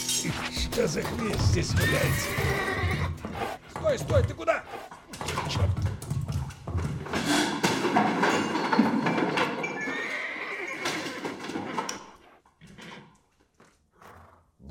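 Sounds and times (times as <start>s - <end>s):
speech: 0.2s - 4.9s
hoof clops: 1.3s - 14.4s
horse whinnying: 1.6s - 3.7s, 9.4s - 13.0s.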